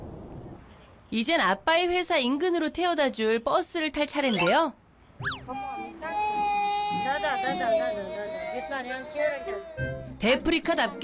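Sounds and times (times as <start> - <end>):
speech: 1.1 - 6.4, 7.0 - 11.0
young child fussing: 5.3 - 10.0.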